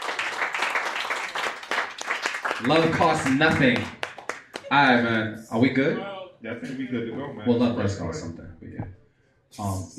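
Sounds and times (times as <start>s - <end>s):
audience clapping: 0.0s - 5.3s
speech: 2.6s - 4.0s, 4.7s - 9.9s.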